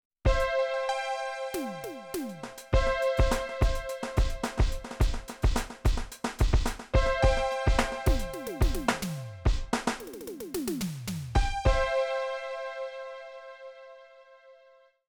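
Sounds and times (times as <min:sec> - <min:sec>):
Millenium MPS450 drum module effects mix: 0:00.3 - 0:00.5, 0:01.6 - 0:11.9.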